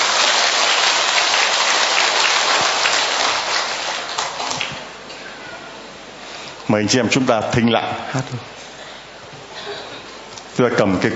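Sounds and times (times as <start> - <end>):
audience applauding: 0.0 - 4.9
speech: 6.7 - 8.6, 10.6 - 11.1.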